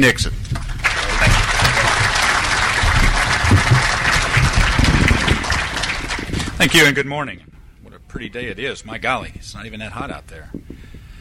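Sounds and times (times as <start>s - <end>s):
speech: 0.0s - 0.4s, 6.6s - 7.5s, 8.1s - 10.6s
audience applause at a Farm Bureau gathering welcoming Jay Nixon: 0.6s - 6.9s.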